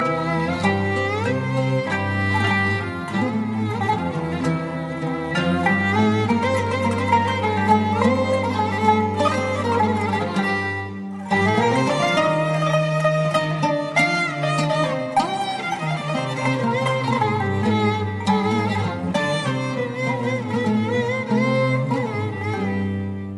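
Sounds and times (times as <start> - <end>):
romantic Turkish music: 0.0 - 23.3.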